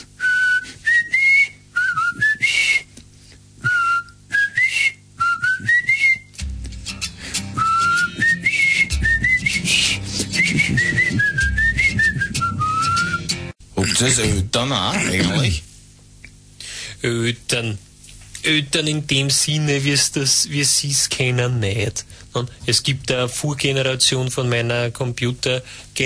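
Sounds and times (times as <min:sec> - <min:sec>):
person whistling a lilting tune: 0:00.2 - 0:03.0, 0:03.6 - 0:13.4
speech: 0:14.0 - 0:15.6, 0:17.0 - 0:17.8, 0:18.4 - 0:26.0.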